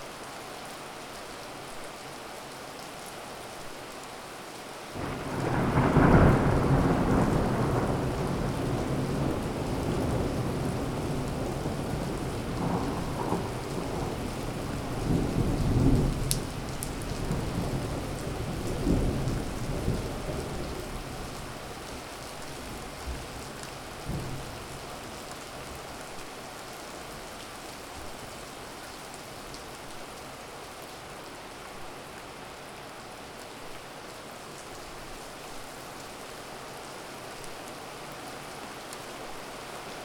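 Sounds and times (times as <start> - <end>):
rain heard from inside: 0.0 - 40.0
thunder heard from inside: 5.0 - 16.6.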